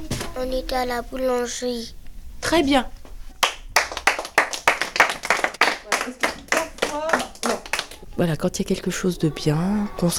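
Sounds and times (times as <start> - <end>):
speech: 0.4 - 3.0, 8.2 - 10.1
group clapping hands: 3.4 - 8.1.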